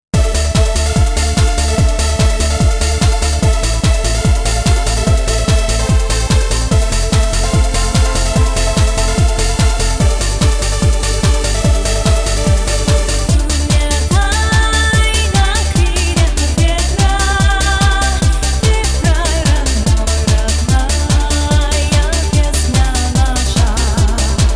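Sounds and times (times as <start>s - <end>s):
orchestral dance music with chorus: 0.2s - 24.5s.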